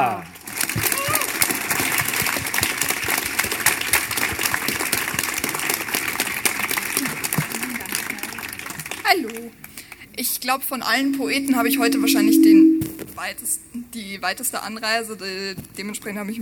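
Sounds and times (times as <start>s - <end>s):
audience applause: 0.5s - 9.5s
speech: 10.2s - 16.4s.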